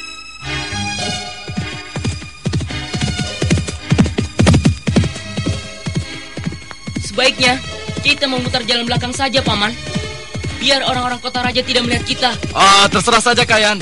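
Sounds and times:
horse hooves clip-clopping: 0.6s - 13.8s
speech: 7.2s - 10.0s, 10.6s - 13.8s.

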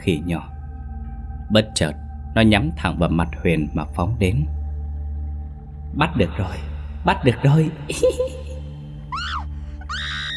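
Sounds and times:
speech: 0.0s - 0.5s, 1.5s - 4.6s, 5.9s - 8.5s
woman screaming in fright: 9.1s - 10.3s.

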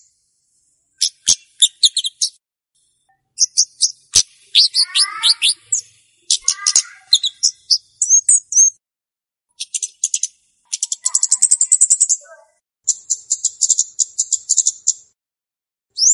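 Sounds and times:
flowerpecker chirping: 1.0s - 2.4s, 3.4s - 8.8s, 9.5s - 12.3s, 12.9s - 15.2s.

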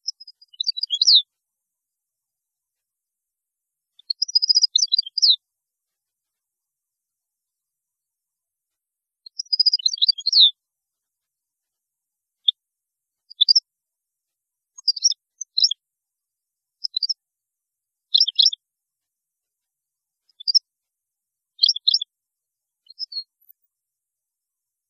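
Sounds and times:
European goldfinch twittering: 0.0s - 1.2s, 4.0s - 5.4s, 9.4s - 10.5s, 18.1s - 18.6s, 21.6s - 22.0s.

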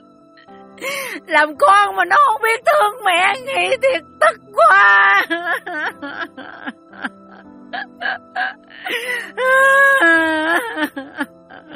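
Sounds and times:
speech: 0.8s - 11.7s
woman weeping hard over her son's fate: 4.2s - 11.7s.

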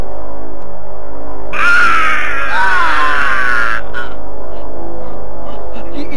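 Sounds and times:
eerie shrill wailing cry of a creature: 1.5s - 5.6s.

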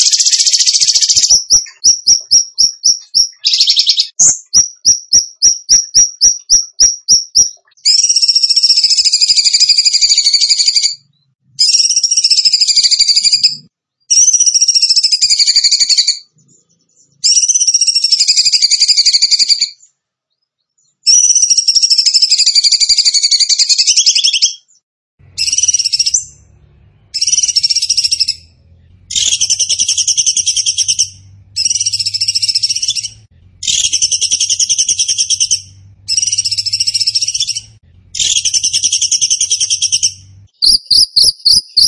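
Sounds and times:
bird song trills: 0.0s - 41.8s
low hum: 25.2s - 40.6s.

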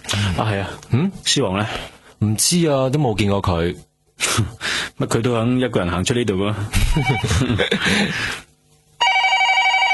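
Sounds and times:
speech: 0.2s - 8.4s
telephone ringing: 6.9s - 7.5s, 9.0s - 9.9s.

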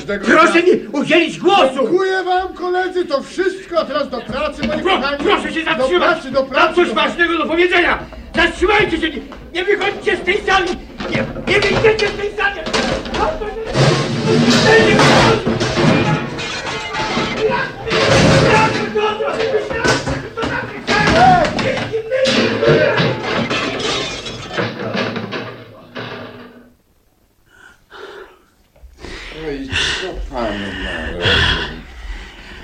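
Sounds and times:
speech: 0.1s - 15.5s
furniture being smashed as a man wrecks a restored room: 7.6s - 26.6s
gasping breaths: 8.0s - 8.4s, 27.4s - 32.6s.

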